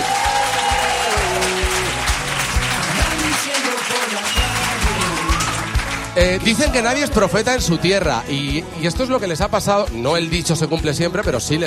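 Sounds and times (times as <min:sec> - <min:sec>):
audience applause: 0:00.0 - 0:06.7
speech: 0:06.2 - 0:11.6.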